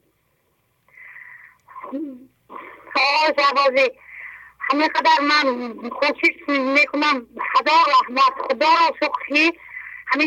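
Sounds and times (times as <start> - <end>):
woman drawing a deep breath: 0.9 - 1.6, 4.0 - 4.6
speech: 3.3 - 4.0, 4.7 - 10.2.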